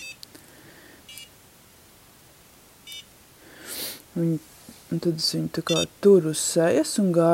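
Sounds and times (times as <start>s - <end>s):
short electronic beeps from facial massage device: 0.0s - 0.2s, 1.1s - 1.3s, 2.8s - 3.1s, 5.7s - 5.9s
hiss: 0.0s - 7.3s
soft rustle: 3.8s - 5.2s
speech: 4.2s - 7.3s.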